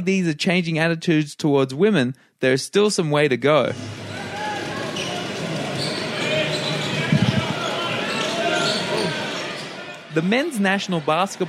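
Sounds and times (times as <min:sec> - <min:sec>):
speech: 0:00.0 - 0:04.0, 0:10.2 - 0:11.4
crowd murmur at a basketball game: 0:03.8 - 0:10.2.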